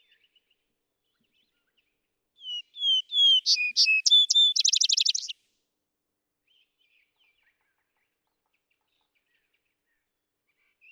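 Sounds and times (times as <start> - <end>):
Vesper sparrow singing: 2.4 - 5.3.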